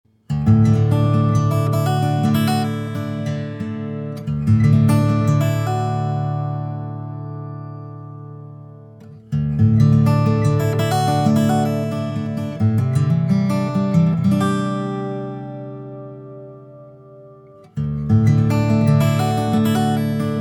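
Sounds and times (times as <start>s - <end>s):
guitar: 0.1s - 20.4s.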